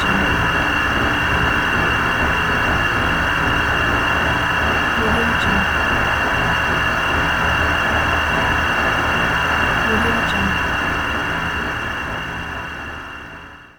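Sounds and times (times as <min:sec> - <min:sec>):
dark ambient drone: 0:00.0 - 0:13.7.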